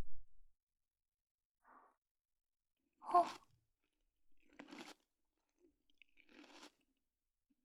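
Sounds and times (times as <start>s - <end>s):
person chewing Japanese appetizer with sake: 3.1s - 3.5s, 4.4s - 6.9s.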